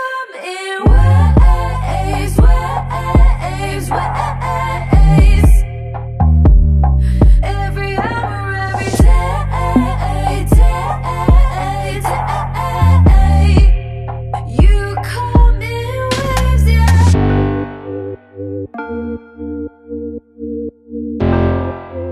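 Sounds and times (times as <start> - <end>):
karaoke backing music: 0.9 - 17.6.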